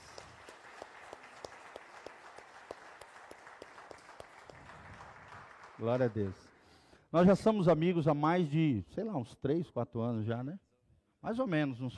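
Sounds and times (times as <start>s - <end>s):
audience applause: 0.0s - 6.6s
speech: 5.8s - 6.5s, 7.1s - 10.6s, 11.2s - 11.9s.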